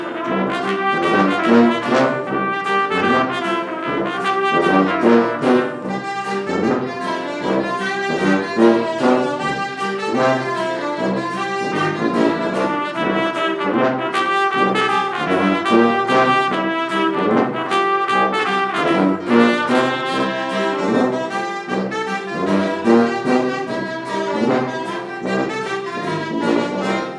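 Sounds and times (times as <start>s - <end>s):
orchestra playing at a festival: 0.0s - 27.1s.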